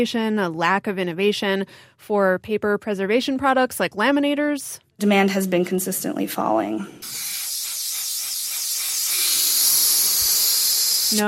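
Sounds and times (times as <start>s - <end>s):
speech: 0.0s - 7.3s
helium machine inflating balloons: 7.0s - 11.2s.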